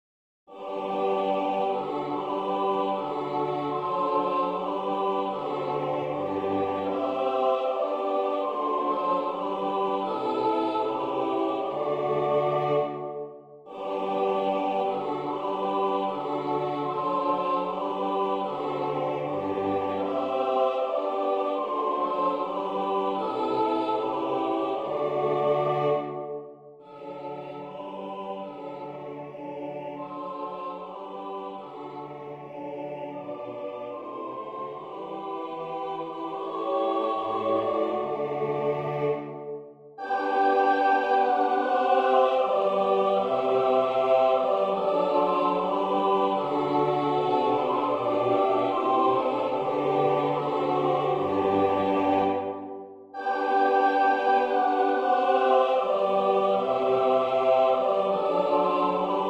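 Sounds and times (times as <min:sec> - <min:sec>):
national anthem music: 0:00.5 - 0:59.2.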